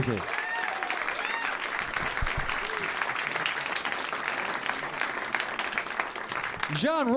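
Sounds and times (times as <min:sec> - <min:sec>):
audience applause: 0:00.0 - 0:07.1.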